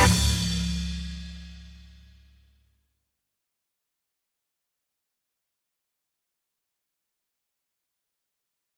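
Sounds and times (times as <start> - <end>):
blues music: 0.0 - 1.8.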